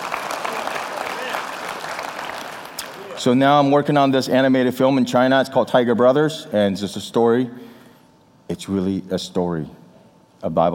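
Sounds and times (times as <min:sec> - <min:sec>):
audience applause: 0:00.0 - 0:03.2
speech: 0:03.2 - 0:07.7, 0:08.6 - 0:09.8, 0:10.4 - 0:10.7.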